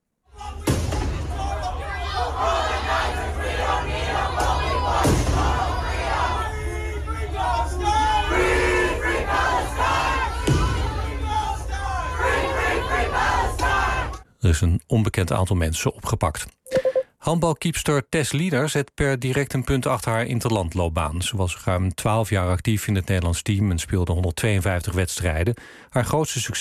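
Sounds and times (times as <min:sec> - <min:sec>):
protest crowd shouting and chanting: 0:00.3 - 0:14.2
speech: 0:14.4 - 0:16.6, 0:17.2 - 0:26.5.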